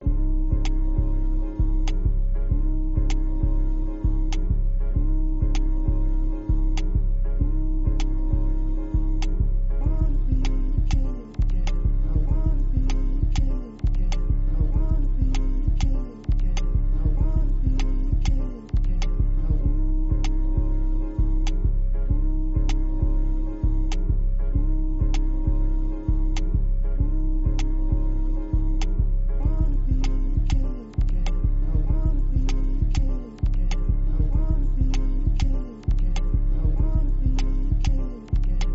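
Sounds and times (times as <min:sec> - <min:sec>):
instrumental type beat: 0:00.0 - 0:38.7.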